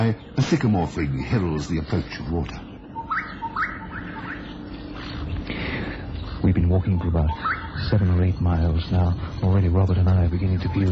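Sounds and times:
speech: 0.0 - 2.6, 6.4 - 10.9
bushshrike calling from a thorn tree: 2.9 - 5.3, 6.0 - 10.9.

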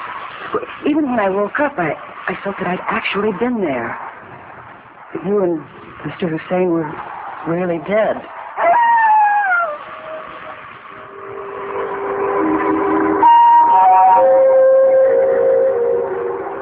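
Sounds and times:
speech: 0.5 - 4.0, 5.1 - 8.3
distant jackals howling: 8.3 - 16.6.

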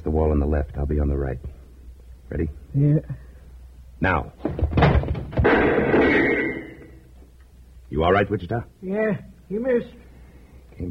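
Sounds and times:
speech: 0.2 - 1.6, 2.3 - 3.2, 4.0 - 5.0, 7.9 - 10.0
heavy door thud: 4.4 - 6.2.

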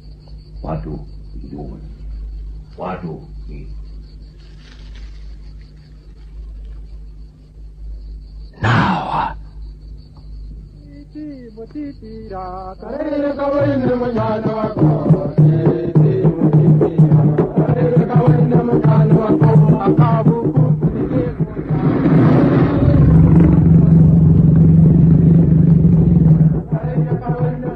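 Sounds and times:
speech: 0.6 - 2.0, 2.8 - 3.9, 11.1 - 20.6
drums: 13.4 - 27.7.

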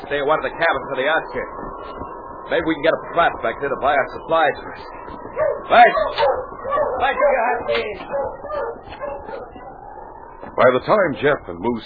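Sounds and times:
speech: 0.1 - 8.7, 10.6 - 11.8
sled dogs barking and whimpering: 5.3 - 10.1.

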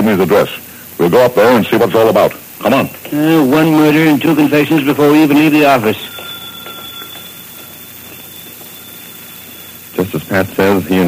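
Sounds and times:
speech: 0.0 - 6.1, 10.4 - 11.0
telephone ringing: 2.6 - 11.0.

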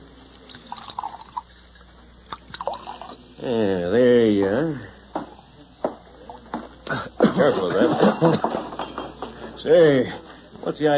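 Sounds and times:
drink poured from a bottle into glasses at a bar: 0.3 - 3.3
speech: 3.4 - 4.9, 7.4 - 8.6, 9.6 - 10.9
laughter: 6.9 - 8.8.

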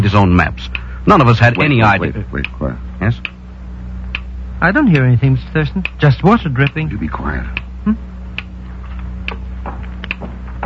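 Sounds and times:
speech: 0.0 - 3.4, 4.6 - 8.1
small clock-like timer ticking: 0.7 - 3.4, 4.1 - 7.7.

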